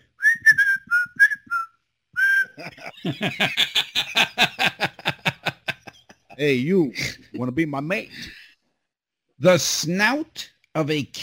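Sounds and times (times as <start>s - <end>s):
person whistling a bird-like call: 0.1s - 2.6s
laughter: 2.5s - 7.4s
speech: 2.6s - 4.5s, 6.4s - 8.4s, 9.4s - 11.2s.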